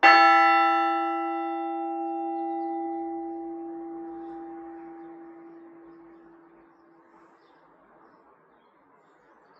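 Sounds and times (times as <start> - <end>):
bells of Sussex: 0.0 - 6.8.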